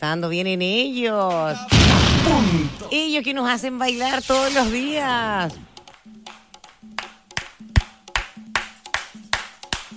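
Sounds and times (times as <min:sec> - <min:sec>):
speech: 0:00.0 - 0:06.4
audience clapping: 0:06.6 - 0:09.9.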